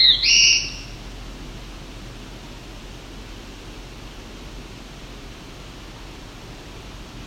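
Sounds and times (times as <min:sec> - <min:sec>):
black-throated blue warbler buzzy whistle: 0:00.0 - 0:01.0.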